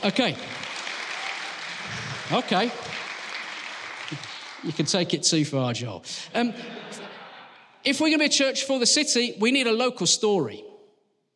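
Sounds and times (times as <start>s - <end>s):
speech: 0.0s - 0.6s, 2.3s - 3.0s, 4.1s - 7.2s, 7.8s - 10.7s
audience applause: 0.0s - 5.6s
laughter: 1.6s - 3.4s, 6.1s - 7.8s.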